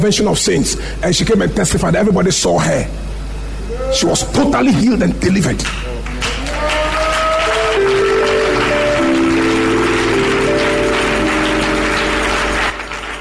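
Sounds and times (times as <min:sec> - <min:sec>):
speech: 0:00.0 - 0:03.1, 0:03.7 - 0:06.0
audience clapping: 0:05.6 - 0:13.1
sustained keyboard or organ notes: 0:07.7 - 0:13.1.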